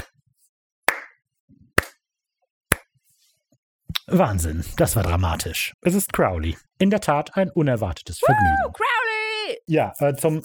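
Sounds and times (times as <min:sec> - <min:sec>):
sharp hand claps: 0:00.9 - 0:01.2, 0:01.8 - 0:02.0, 0:02.7 - 0:02.9
speech: 0:04.1 - 0:10.4.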